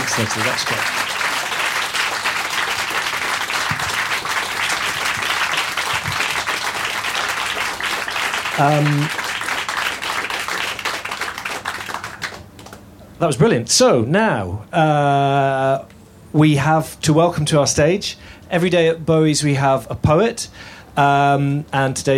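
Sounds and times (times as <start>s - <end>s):
audience applause after an onstage interview at a live event: 0.0s - 12.8s
speech: 0.2s - 1.1s, 8.6s - 9.2s, 13.2s - 22.1s.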